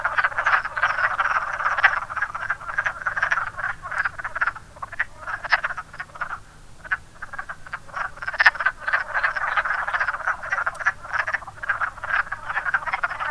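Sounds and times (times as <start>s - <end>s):
wood frog calling: 0.0s - 13.2s.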